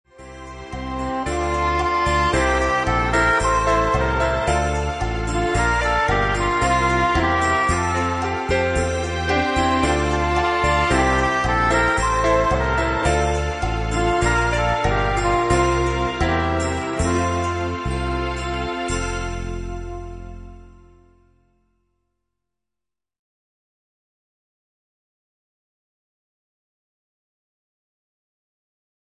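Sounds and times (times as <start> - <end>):
interlude music playback: 0.1 - 21.7.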